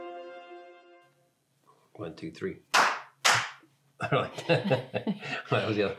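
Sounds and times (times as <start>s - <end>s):
speech: 2.1s - 2.8s, 4.0s - 5.9s
hands clapping: 2.7s - 3.6s
laughter: 4.0s - 5.9s.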